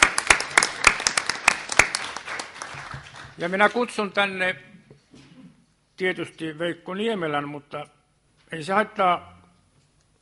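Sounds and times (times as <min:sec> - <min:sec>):
sparse applause from a small group at a meeting: 0:00.0 - 0:03.5
speech: 0:03.4 - 0:04.7, 0:06.0 - 0:09.4.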